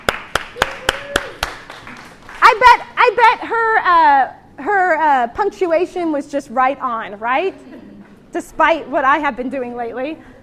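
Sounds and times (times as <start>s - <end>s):
congregation clapping at a church service: 0.0s - 2.4s
speech: 2.6s - 10.3s.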